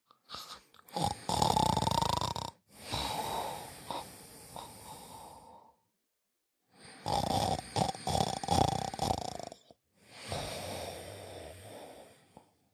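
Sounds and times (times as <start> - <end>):
person snoring: 0.2 - 5.9, 6.7 - 12.7.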